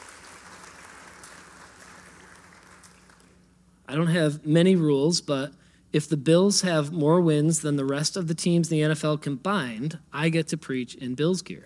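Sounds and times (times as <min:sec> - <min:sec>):
crowd applauding: 0:00.0 - 0:03.4
speech: 0:03.9 - 0:11.6.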